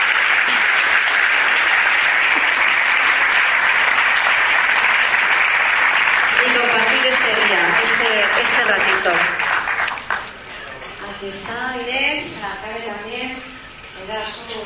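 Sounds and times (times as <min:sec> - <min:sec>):
audience applause: 0:00.0 - 0:11.1
speech: 0:11.2 - 0:14.6.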